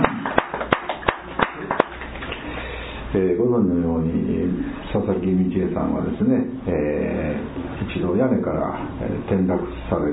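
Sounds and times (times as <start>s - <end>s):
crowd clapping for an 83rd birthday at a place of worship: 0.0s - 2.4s
speech: 3.1s - 10.1s.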